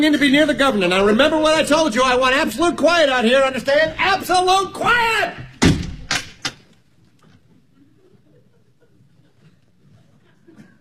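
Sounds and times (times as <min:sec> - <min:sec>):
speech: 0:00.0 - 0:05.4
man shutting a door: 0:05.6 - 0:06.6
laughter: 0:07.7 - 0:10.7.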